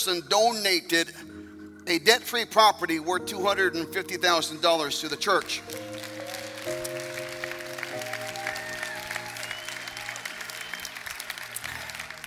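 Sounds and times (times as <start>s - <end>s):
speech: 0.0s - 6.0s
audience applause: 5.3s - 12.2s.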